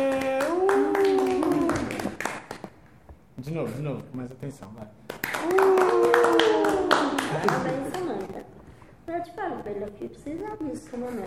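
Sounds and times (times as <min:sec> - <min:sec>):
audience applause at CEU Parque Bristol for a child: 0:00.0 - 0:02.7, 0:05.1 - 0:08.4
speech: 0:03.6 - 0:05.6, 0:09.2 - 0:11.2.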